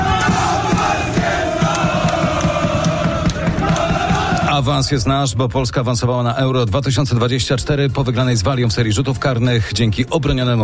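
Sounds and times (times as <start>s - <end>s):
football fans' shouts: 0.0s - 4.5s
Polish football fans chanting: 0.0s - 4.6s
speech: 4.6s - 10.6s.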